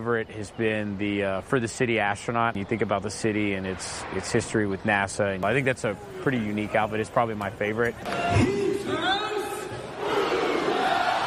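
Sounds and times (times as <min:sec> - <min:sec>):
speech: 0:00.0 - 0:09.0
arena crowd roaring a chant: 0:08.1 - 0:11.2.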